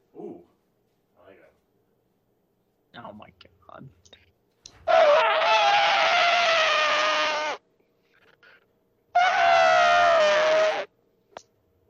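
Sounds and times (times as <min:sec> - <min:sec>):
speech: 0:03.0 - 0:04.2
person imitating an elephant trumpeting: 0:04.8 - 0:07.6, 0:09.2 - 0:10.9.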